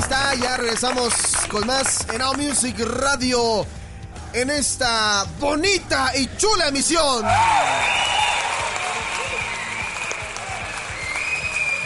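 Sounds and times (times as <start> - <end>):
applause: 0.0 - 2.8, 7.6 - 11.8
speech: 0.4 - 8.0.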